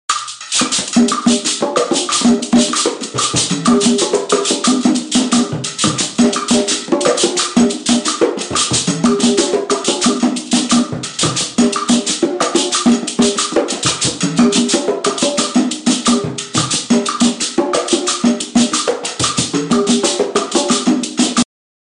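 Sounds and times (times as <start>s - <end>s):
guarapachangueo Afro-Cuban rumba drumming: 0.1s - 21.4s.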